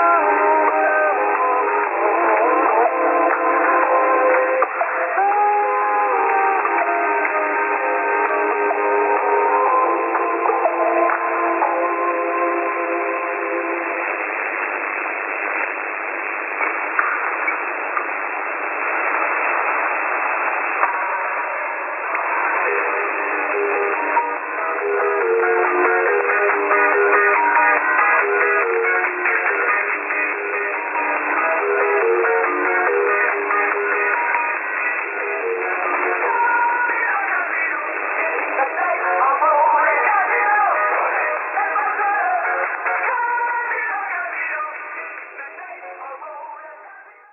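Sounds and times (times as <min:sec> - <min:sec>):
upper sideband radio signal on 6925 kHz: 0:00.0 - 0:47.3.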